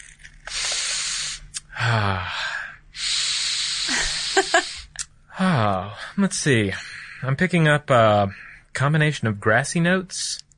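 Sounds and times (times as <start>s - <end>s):
person sniffing a book: 0.4s - 2.2s, 3.0s - 5.0s
brief hummed voice sound: 1.0s - 5.9s
speech: 1.8s - 2.5s, 5.4s - 10.4s.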